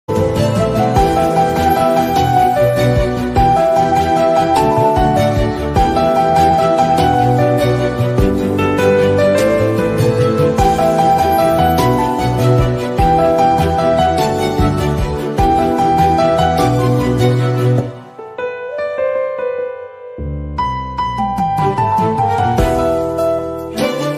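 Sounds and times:
instrumental background music: 0:00.1 - 0:24.1.

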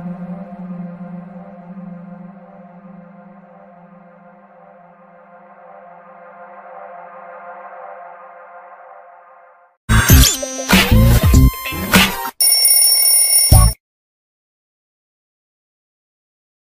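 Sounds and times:
heroine background music ringtone: 0:09.9 - 0:13.8.

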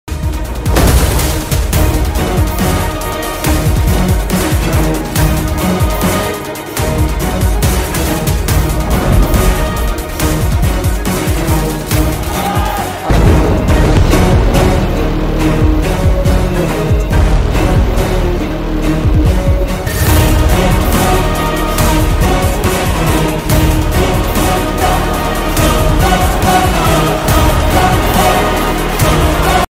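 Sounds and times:
movie background music: 0:00.1 - 0:29.7.

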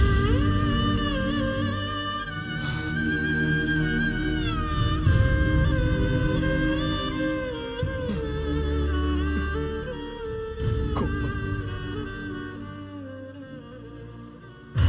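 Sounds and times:
sad violin ringtone: 0:00.2 - 0:14.8.

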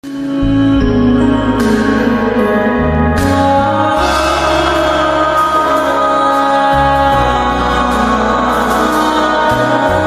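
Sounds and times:
sad ringtone melody: 0:00.1 - 0:09.2.

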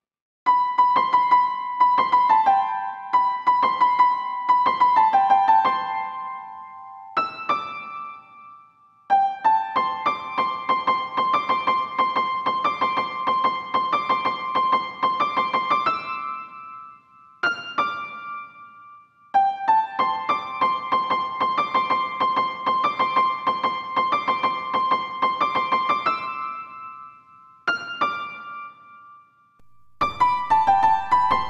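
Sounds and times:
instrumental piano ringtone: 0:00.5 - 0:31.4.

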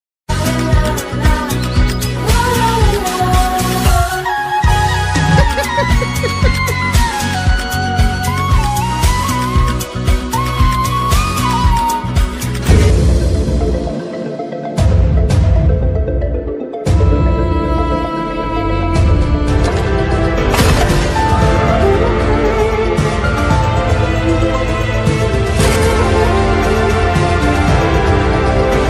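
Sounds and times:
trailer background music: 0:00.3 - 0:28.8
laughter: 0:05.2 - 0:07.0.

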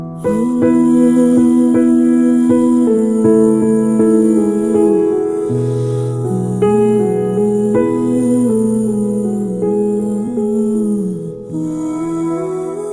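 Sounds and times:
sad background music: 0:00.1 - 0:12.9.

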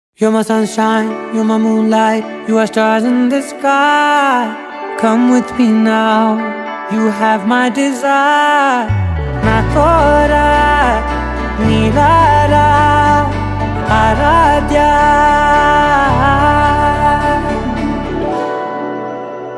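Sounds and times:
Telugu love song ringtone: 0:00.2 - 0:19.5.

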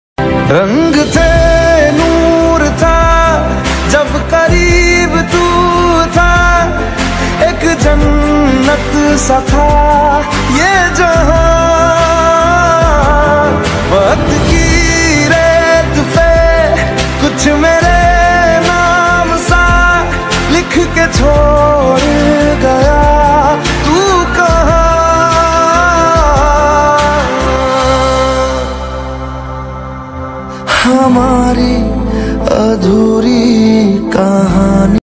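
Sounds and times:
Punjabi ringtone music: 0:00.4 - 0:35.0.

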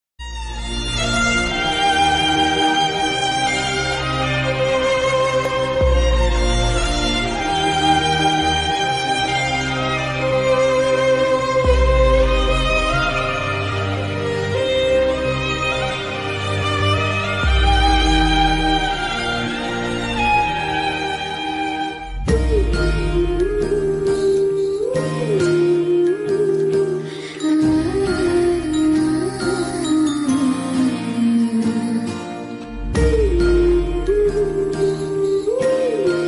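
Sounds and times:
sad Tamil movie background music ringtone: 0:00.2 - 0:36.1.

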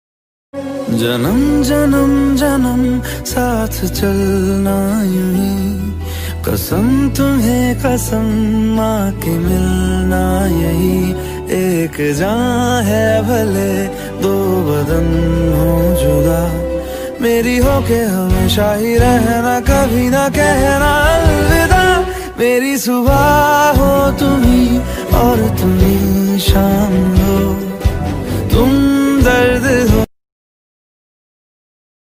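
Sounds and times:
romantic ringtone: 0:00.6 - 0:30.1.

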